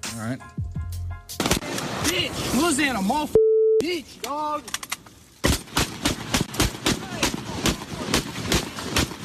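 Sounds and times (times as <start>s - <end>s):
speech: 0.2s - 0.7s, 1.3s - 4.8s
two AK-47 rifles firing into a lake: 1.4s - 2.6s, 5.4s - 9.2s.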